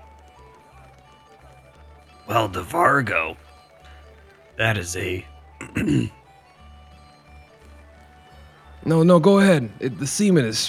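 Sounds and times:
speech: 2.3s - 3.4s, 4.6s - 6.2s, 8.9s - 10.6s
throat clearing: 5.6s - 6.2s.

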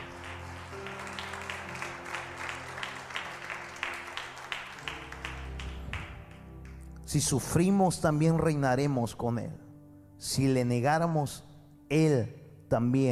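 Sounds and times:
audience applause: 0.0s - 6.4s
speech: 7.1s - 9.6s, 10.2s - 13.1s.

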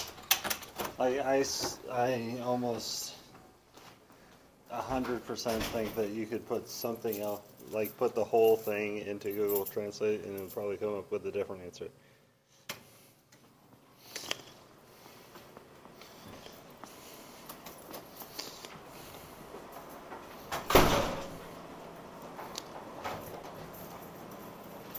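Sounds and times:
speech: 1.0s - 3.2s, 4.7s - 12.0s
locked door being tried: 20.4s - 21.5s.

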